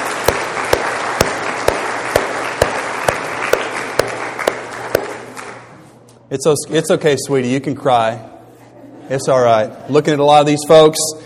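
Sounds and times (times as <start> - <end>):
audience applause: 0.0 - 5.7
speech: 6.3 - 8.4, 9.1 - 11.2.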